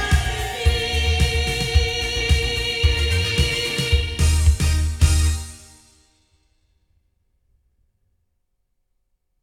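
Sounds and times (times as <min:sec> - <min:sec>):
loudspeakers: 0:00.0 - 0:05.5.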